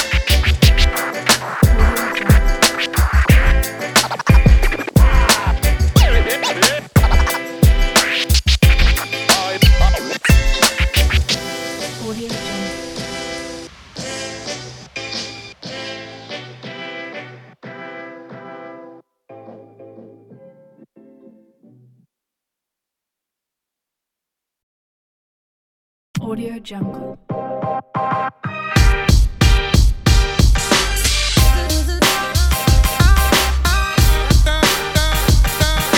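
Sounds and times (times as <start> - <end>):
upbeat hip hop music: 0.0 - 18.8, 28.0 - 35.9.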